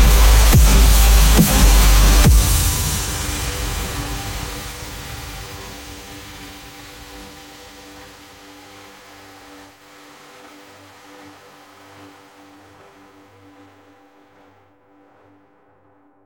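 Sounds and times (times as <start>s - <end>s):
electric rhythm: 0.0s - 5.7s.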